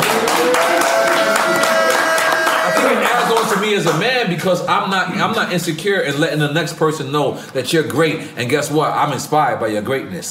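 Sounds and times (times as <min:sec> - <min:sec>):
faint murmur of voices or cheering: 0:00.0 - 0:03.8
crowd clapping: 0:00.0 - 0:04.1
speech: 0:03.8 - 0:10.2.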